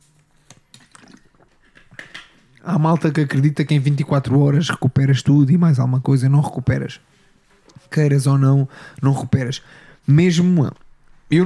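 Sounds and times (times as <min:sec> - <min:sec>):
sipping water: 0:00.6 - 0:02.7
speech: 0:02.6 - 0:07.1, 0:07.9 - 0:11.4.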